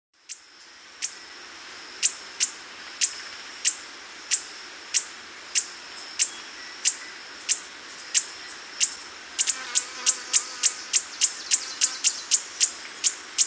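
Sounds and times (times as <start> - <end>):
Hoary Puffleg calling in South America: 2.0 - 13.4.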